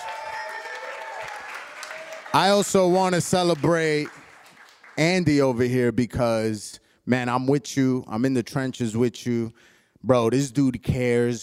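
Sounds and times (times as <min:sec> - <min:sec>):
audience applause: 0:00.0 - 0:05.0
speech: 0:02.3 - 0:04.2, 0:05.0 - 0:11.4.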